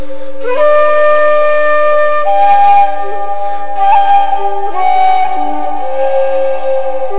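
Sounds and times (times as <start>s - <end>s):
flute: 0.0s - 7.1s.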